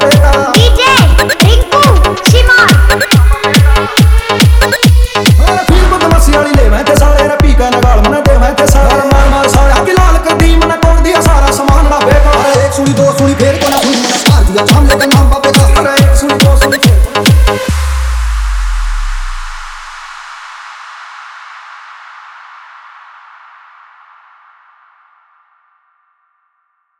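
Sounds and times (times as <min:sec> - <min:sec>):
DJ remix of a Haryanvi song: 0:00.0 - 0:20.7.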